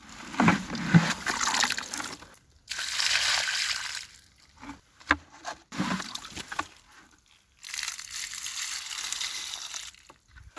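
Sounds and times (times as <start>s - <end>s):
water pouring out of bucket: 0.5s - 4.4s, 5.8s - 10.0s.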